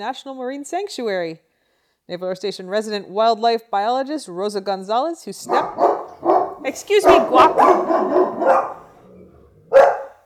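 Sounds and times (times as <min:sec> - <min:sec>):
speech: 0:00.0 - 0:01.5, 0:02.1 - 0:08.8
dog barking at a boat: 0:05.5 - 0:09.0, 0:09.6 - 0:10.2.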